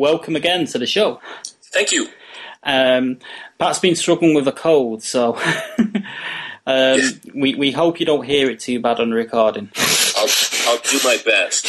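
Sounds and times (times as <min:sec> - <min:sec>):
speech: 0:00.0 - 0:11.6
person blowing nose into hand: 0:09.8 - 0:11.6.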